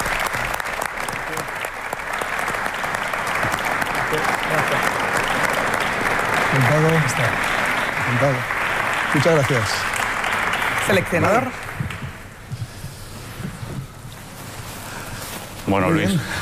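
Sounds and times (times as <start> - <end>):
applause: 0.0 - 12.5
speech: 6.6 - 9.9, 10.9 - 11.6, 15.7 - 16.4.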